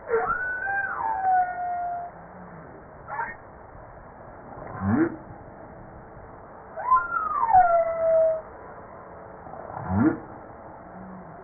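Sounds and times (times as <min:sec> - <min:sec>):
humpback whale song: 0:00.0 - 0:02.5, 0:06.7 - 0:08.5.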